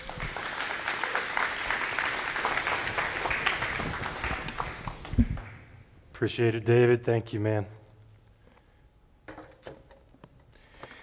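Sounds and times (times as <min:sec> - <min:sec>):
audience applause welcoming a speaker at a church gathering: 0:00.0 - 0:05.7
speech: 0:06.2 - 0:07.8.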